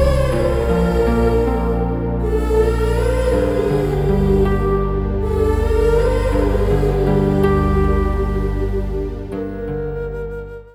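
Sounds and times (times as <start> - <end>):
instrumental music: 0.0 - 10.7.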